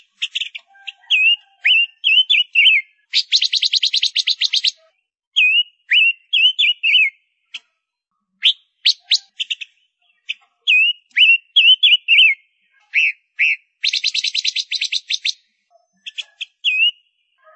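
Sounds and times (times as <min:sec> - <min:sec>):
Gouldian finch singing: 0:00.0 - 0:07.8, 0:08.4 - 0:17.5.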